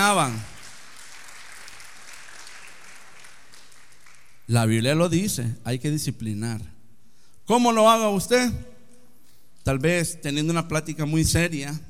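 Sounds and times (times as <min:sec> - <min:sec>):
speech: 0:00.0 - 0:00.5, 0:04.5 - 0:06.7, 0:07.5 - 0:08.7, 0:09.6 - 0:11.8
audience applause: 0:00.0 - 0:04.4.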